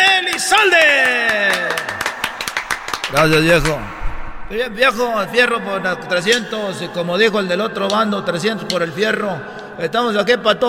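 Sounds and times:
audience clapping: 0.0 - 4.0
speech: 3.1 - 10.6.

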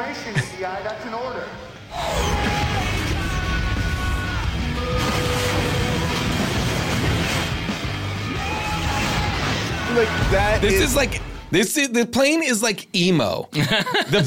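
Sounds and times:
speech: 0.1 - 2.6, 10.0 - 14.2
drone music from a film soundtrack: 1.9 - 11.5
laughter: 13.5 - 14.2.

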